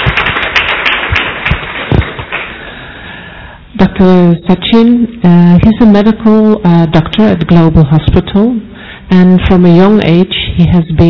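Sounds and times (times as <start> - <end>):
crowd applauding: 0.0 - 2.6
speech: 3.8 - 11.0.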